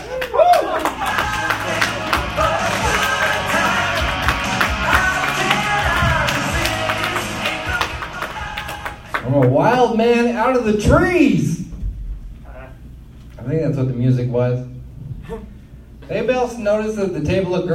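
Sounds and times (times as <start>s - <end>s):
brief rising whoop: 0.0s - 1.3s
audience applause: 0.0s - 9.5s
speech: 9.7s - 11.6s, 13.5s - 14.7s, 16.1s - 17.7s.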